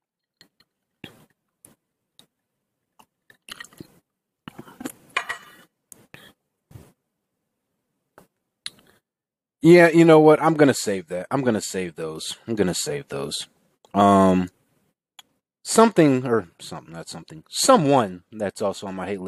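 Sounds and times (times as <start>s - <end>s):
person sipping tea from a cup: 3.0s - 6.4s
speech: 9.6s - 14.6s, 15.6s - 19.2s.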